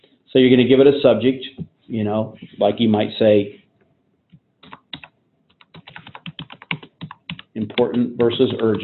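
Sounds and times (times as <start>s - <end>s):
speech: 0.3s - 3.6s, 7.7s - 8.8s
typing on a computer keyboard: 4.6s - 8.8s.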